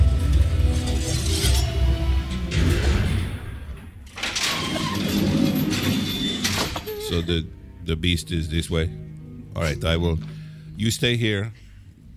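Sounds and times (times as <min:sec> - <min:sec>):
elevator doors sliding with a mechanical rumble: 0:00.4 - 0:07.3
speech: 0:07.2 - 0:11.6.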